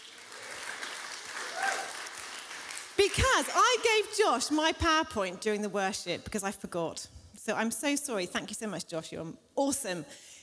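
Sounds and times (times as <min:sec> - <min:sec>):
audience applause: 0:00.0 - 0:03.3
speech: 0:03.0 - 0:10.3.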